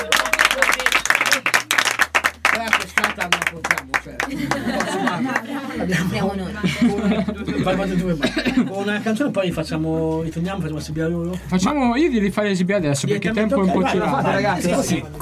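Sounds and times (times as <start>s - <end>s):
laughter: 0.0s - 2.0s, 2.6s - 9.2s, 13.5s - 15.0s
audience applause: 0.0s - 5.6s
speech: 3.2s - 15.2s.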